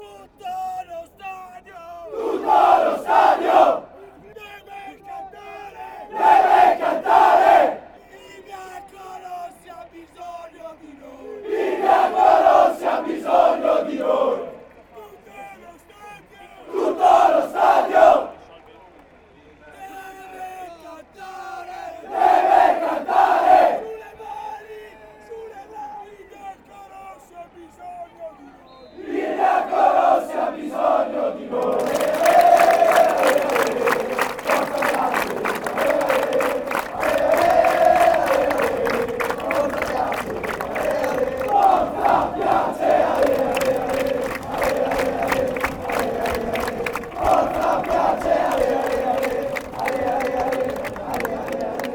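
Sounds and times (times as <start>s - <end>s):
stadium fans chanting: 2.0s - 4.2s, 5.5s - 8.0s, 11.0s - 14.7s, 16.6s - 18.4s, 21.4s - 24.2s, 28.8s - 51.9s.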